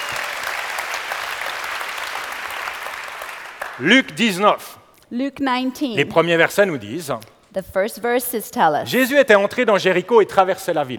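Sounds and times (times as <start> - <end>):
audience applause: 0.0 - 4.4
speech: 3.8 - 10.9.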